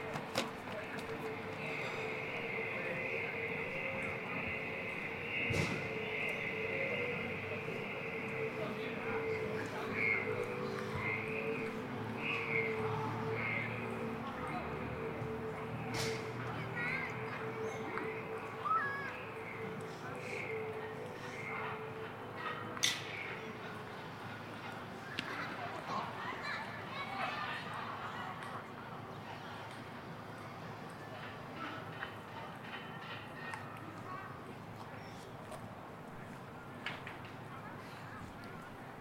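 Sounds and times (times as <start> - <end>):
people talking outdoors at Ditan in Beijing: 0.0 - 39.0
high machine whine: 0.9 - 22.5.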